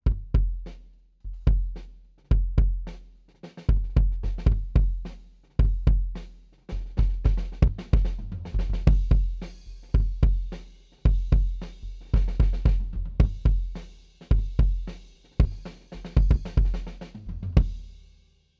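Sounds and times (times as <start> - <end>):
kick drum with head off recorded with D112 microphone: 0.0 - 2.9, 3.7 - 5.0, 5.6 - 6.2, 6.8 - 9.4, 10.0 - 16.9.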